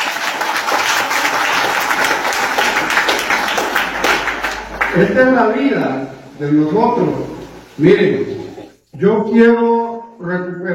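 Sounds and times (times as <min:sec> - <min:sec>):
crowd applauding: 0:00.0 - 0:05.8
speech: 0:05.0 - 0:10.7.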